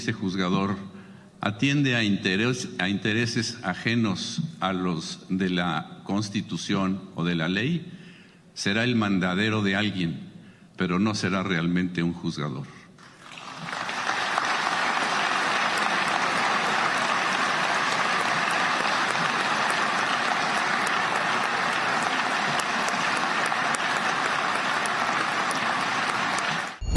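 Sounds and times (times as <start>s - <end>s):
speech: 0.0s - 8.0s, 8.6s - 12.8s
large crowd applause: 13.0s - 26.8s.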